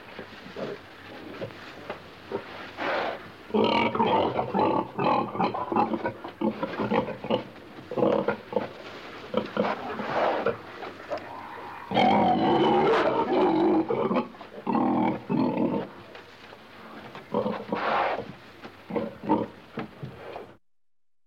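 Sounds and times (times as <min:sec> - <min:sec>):
pig grunting: 0:02.3 - 0:08.7, 0:09.3 - 0:16.0, 0:17.3 - 0:18.3, 0:18.9 - 0:19.6.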